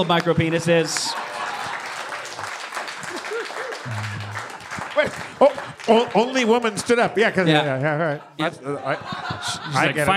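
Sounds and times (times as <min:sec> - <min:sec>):
speech: 0:00.0 - 0:01.3, 0:03.8 - 0:04.2, 0:05.0 - 0:10.1
audience applause: 0:01.1 - 0:06.7
laughter: 0:03.0 - 0:04.5, 0:07.8 - 0:10.1.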